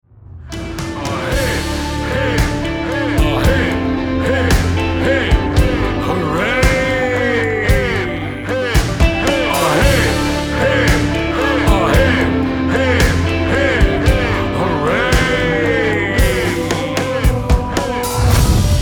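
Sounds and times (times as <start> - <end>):
people cheering hip hip hooray: 0.6 - 18.7.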